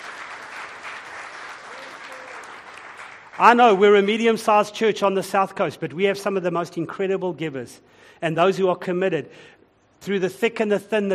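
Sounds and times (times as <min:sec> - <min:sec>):
audience applause: 0:00.0 - 0:04.2
speech: 0:03.4 - 0:11.1.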